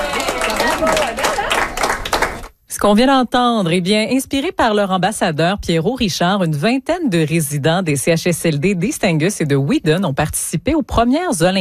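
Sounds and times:
audience applause: 0:00.0 - 0:02.5
speech: 0:02.8 - 0:11.6.

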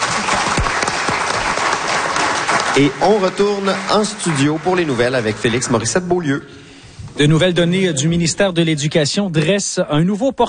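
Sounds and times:
audience applause in a studio morning show: 0:00.0 - 0:06.1
speech: 0:02.8 - 0:10.4.

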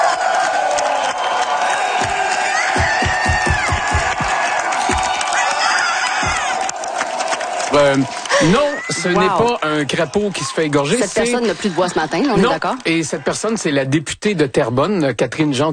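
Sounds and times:
crowd shouting and cheering at political rally: 0:00.0 - 0:13.8
rhythmic low thumps: 0:02.0 - 0:05.2, 0:06.2 - 0:06.6
speech: 0:07.8 - 0:15.7.

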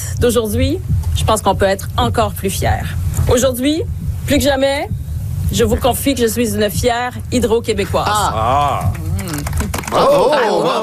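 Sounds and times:
speech: 0:00.2 - 0:09.0, 0:09.9 - 0:10.8
polite golf-style applause: 0:08.8 - 0:10.2.

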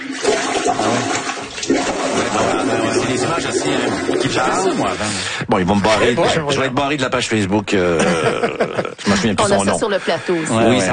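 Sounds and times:
water backflow gurgling in a toilet bowl during heavy rain: 0:00.0 - 0:06.6
speech: 0:00.7 - 0:02.5, 0:03.1 - 0:10.9
laughter: 0:07.8 - 0:10.9.

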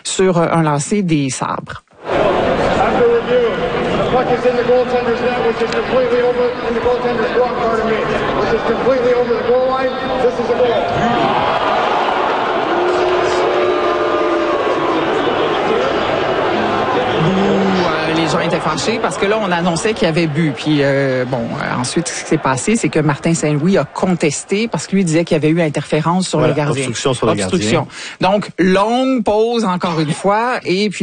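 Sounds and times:
speech: 0:00.2 - 0:01.8, 0:02.9 - 0:11.9, 0:18.3 - 0:31.0
hockey crowd waiting outside arena: 0:02.0 - 0:26.3.

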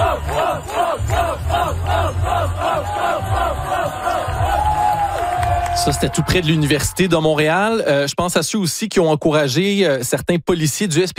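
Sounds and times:
crowd chanting rhythmically: 0:00.0 - 0:05.4
large crowd cheering on cyclists: 0:00.0 - 0:07.6
speech: 0:05.8 - 0:11.1.

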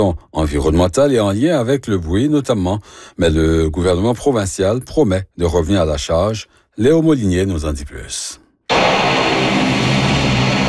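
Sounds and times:
speech: 0:00.0 - 0:08.4
airplane jet engines roaring taking off: 0:08.7 - 0:10.6.

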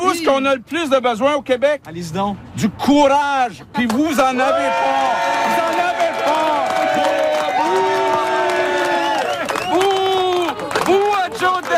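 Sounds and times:
speech: 0:00.2 - 0:06.6
crowd booing and shouting: 0:04.4 - 0:11.7.

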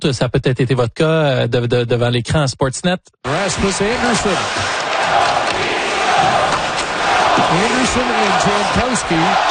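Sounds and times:
speech: 0:00.0 - 0:05.6, 0:07.4 - 0:09.4
hockey crowd booing a goalie: 0:03.3 - 0:09.4.

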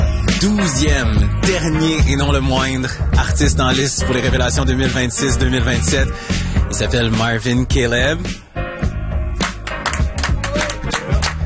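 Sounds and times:
speech: 0:00.4 - 0:08.4
small group hands clapping in applause: 0:09.4 - 0:11.4.

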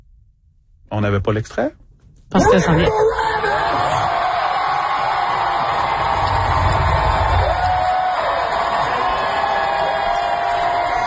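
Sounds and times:
speech: 0:00.9 - 0:03.3
large crowd cheering in a standing ovation: 0:02.9 - 0:11.0.

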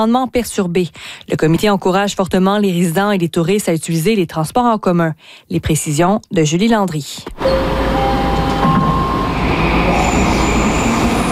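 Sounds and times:
speech: 0:00.0 - 0:07.8
metro train rumbling through a subway station: 0:07.4 - 0:11.3
metro train wheels and brakes whining: 0:07.4 - 0:11.3.

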